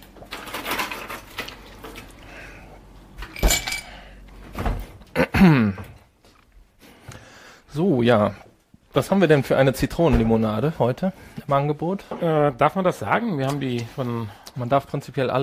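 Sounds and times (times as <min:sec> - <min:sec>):
ice cube machine dispensing ice: 0:00.2 - 0:02.1
speech: 0:05.4 - 0:05.9, 0:08.1 - 0:15.4.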